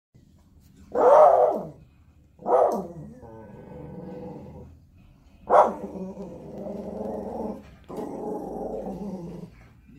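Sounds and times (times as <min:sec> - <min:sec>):
Spitz dog barking and whining: 0:00.9 - 0:01.8, 0:02.4 - 0:03.4, 0:05.4 - 0:09.5.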